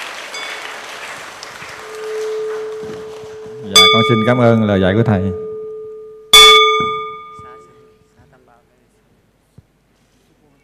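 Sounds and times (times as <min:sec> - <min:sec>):
audience applause: 0:00.0 - 0:03.7
speech: 0:03.7 - 0:05.4.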